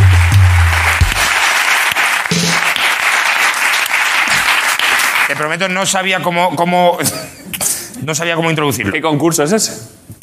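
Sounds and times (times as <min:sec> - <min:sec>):
applause: 0:00.0 - 0:05.6
speech: 0:05.5 - 0:10.2.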